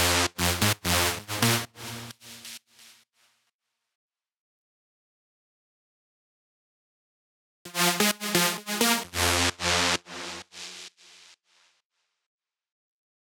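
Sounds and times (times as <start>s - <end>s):
FM synth lead loop in tribal house: 0.0s - 2.6s, 7.7s - 10.7s.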